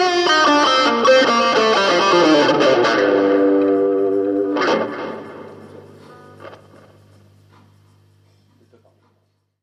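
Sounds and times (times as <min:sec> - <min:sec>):
guitar: 0:00.0 - 0:07.5.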